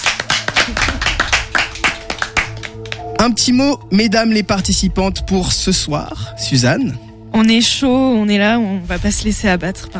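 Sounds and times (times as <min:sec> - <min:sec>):
small audience applause: 0:00.0 - 0:03.2
speech: 0:03.2 - 0:09.9.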